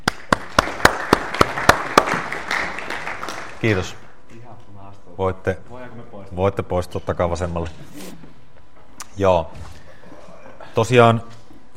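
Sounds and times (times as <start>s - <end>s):
audience applause: 0.0s - 3.9s
speech: 3.6s - 4.0s, 5.2s - 8.2s, 9.2s - 9.8s, 10.8s - 11.7s.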